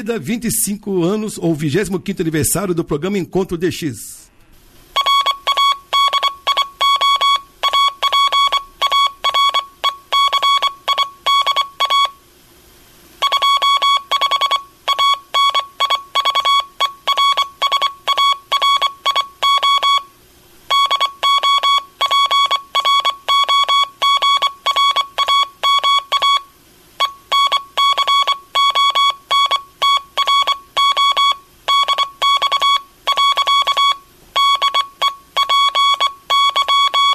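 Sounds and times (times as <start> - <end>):
speech: 0.0 - 4.3
Morse code CW transmission tone: 5.0 - 12.2, 13.2 - 20.1, 20.7 - 37.1.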